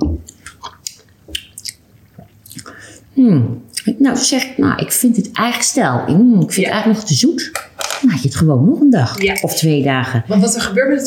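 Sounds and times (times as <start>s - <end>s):
wet mouth sounds tasting homemade kombucha from a spoon: 0.0s - 2.8s, 3.4s - 4.5s
speech: 3.2s - 11.0s.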